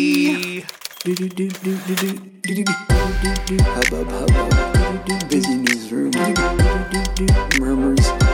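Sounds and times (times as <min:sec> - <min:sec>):
typewriter typing: 0:00.0 - 0:02.3
speech: 0:00.0 - 0:08.2.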